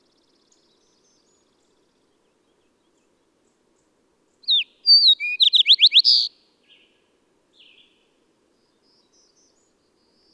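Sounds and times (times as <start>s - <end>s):
bird whistling phrase with buzzy ending: 4.5s - 6.3s.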